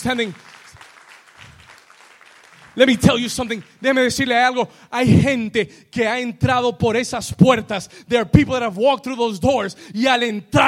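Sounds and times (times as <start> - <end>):
speech: 0.0 - 0.6, 2.8 - 10.6
audience applause: 0.0 - 3.8.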